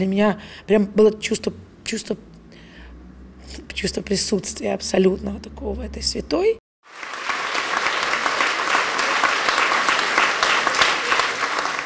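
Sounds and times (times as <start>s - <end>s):
speech: 0.0s - 2.3s, 3.5s - 7.1s
theatre audience applause: 6.8s - 11.8s.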